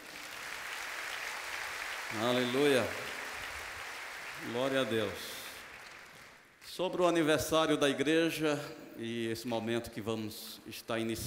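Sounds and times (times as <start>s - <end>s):
crowd applause: 0.0s - 6.5s
speech: 2.1s - 3.0s, 4.4s - 5.4s, 6.7s - 11.2s.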